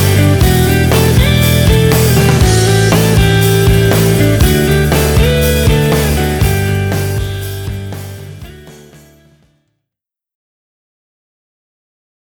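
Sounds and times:
chill out music: 0.0 - 9.4.

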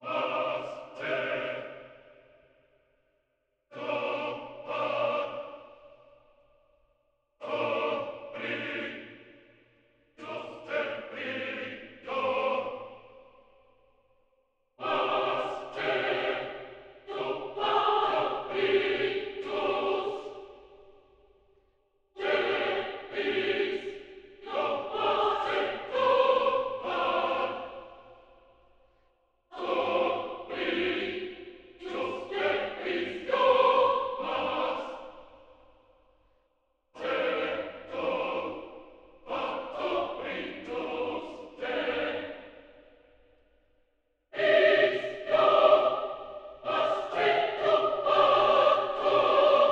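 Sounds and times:
a cappella singing: 0.0 - 1.8, 3.7 - 6.0, 7.4 - 9.3, 10.1 - 13.2, 14.8 - 20.9, 22.2 - 28.4, 29.5 - 35.6, 37.0 - 42.8, 44.3 - 49.7.

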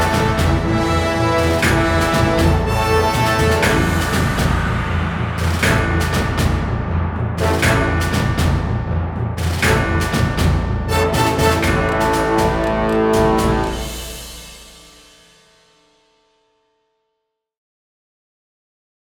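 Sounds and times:
action brass: 0.0 - 6.8, 7.4 - 8.8, 9.4 - 15.0
action percussion: 0.0 - 15.9.

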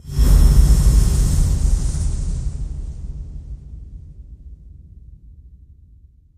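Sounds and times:
swell: 0.0 - 4.8.

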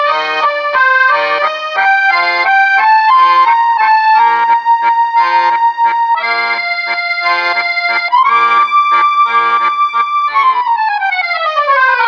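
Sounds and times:
accordion solo: 0.0 - 12.0.

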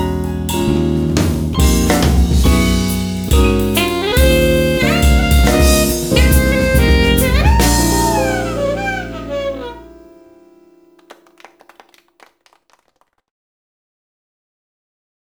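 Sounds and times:
live jazz with taiko drums: 0.0 - 10.0.

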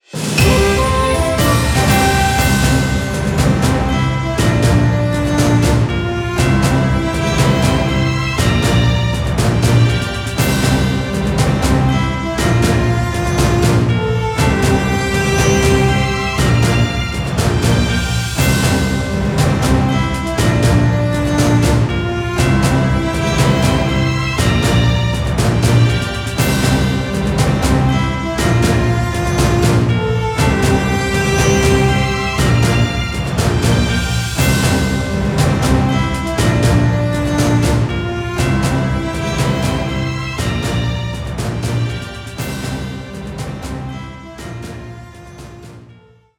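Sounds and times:
battle win jingle: 0.1 - 44.8.

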